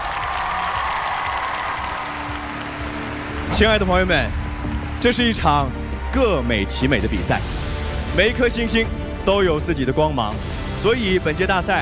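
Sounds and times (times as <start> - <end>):
large audience applause: 0.0 - 6.0
speech: 3.5 - 4.4, 5.0 - 11.8.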